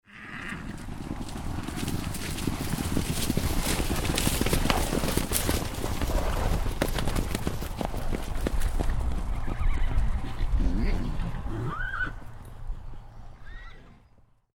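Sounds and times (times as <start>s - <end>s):
horse whinny: 0.0s - 0.8s, 9.4s - 12.2s, 13.4s - 14.1s
horses galloping: 0.2s - 14.4s.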